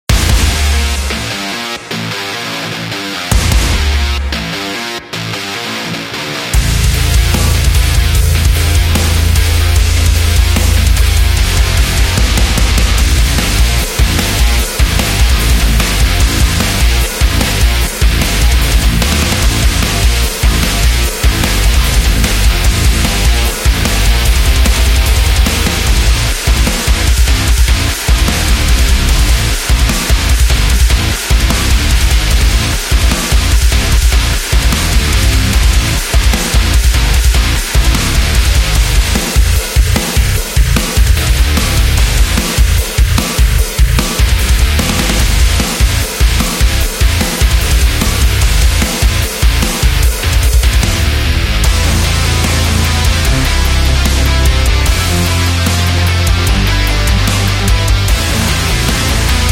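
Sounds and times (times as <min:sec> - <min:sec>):
extreme metal music: 0:00.0 - 0:59.4.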